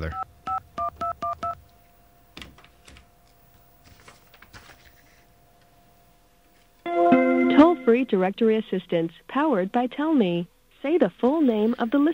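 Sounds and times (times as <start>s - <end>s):
speech: 0.0s - 0.3s, 7.9s - 12.1s
telephone keypad dialing beeps: 0.1s - 1.6s.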